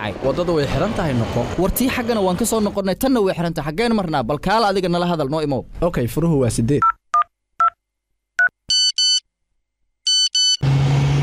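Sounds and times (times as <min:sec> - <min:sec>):
speech: 0:00.0 - 0:07.0
mobile phone ringing with electronic beeps: 0:08.4 - 0:09.2, 0:10.1 - 0:10.6.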